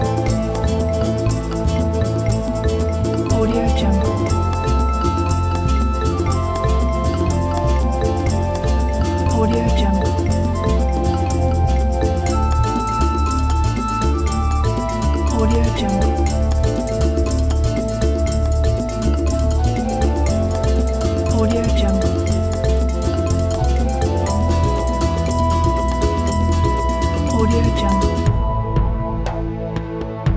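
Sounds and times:
Amazon flute loop: 0.0s - 30.2s.

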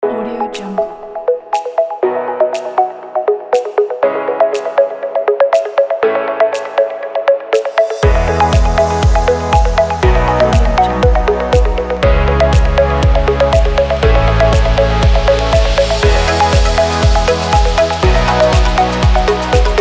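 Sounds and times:
summer pop dance party music: 0.0s - 19.7s.

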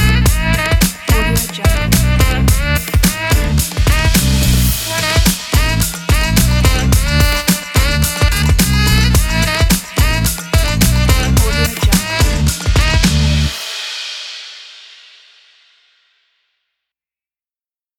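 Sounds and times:
funk hip hop drum kit beat: 0.0s - 15.1s.

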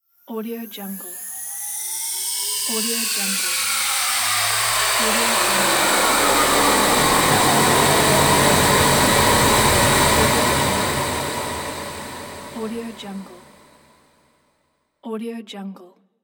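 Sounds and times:
long sweep: 2.5s - 13.8s.

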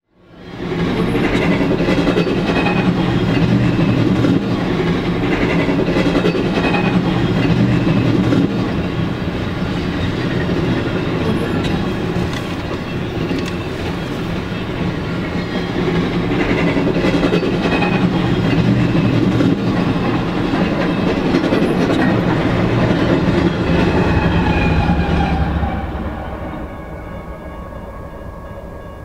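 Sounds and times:
train: 0.1s - 29.0s.

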